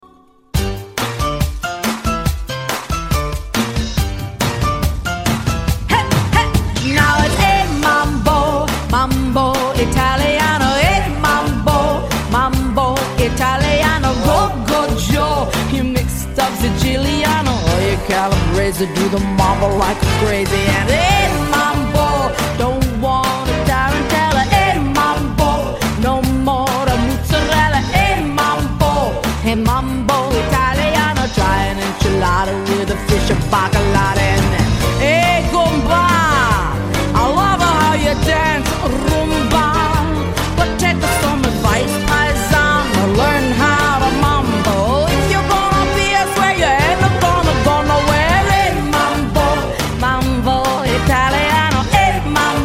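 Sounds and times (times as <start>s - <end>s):
music: 0.0s - 52.6s.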